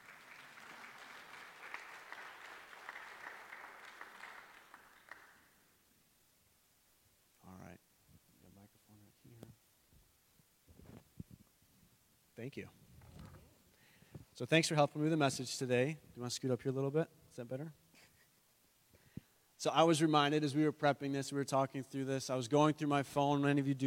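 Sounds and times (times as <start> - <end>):
audience applause: 0.0 - 5.6
speech: 12.4 - 12.8, 14.4 - 17.8, 19.6 - 23.8.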